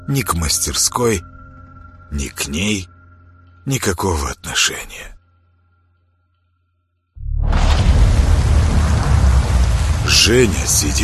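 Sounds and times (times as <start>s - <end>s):
speech: 0.1s - 1.3s, 2.1s - 2.9s, 3.6s - 5.1s, 10.1s - 11.0s
cold autumn rain dripping from trees: 7.6s - 11.0s.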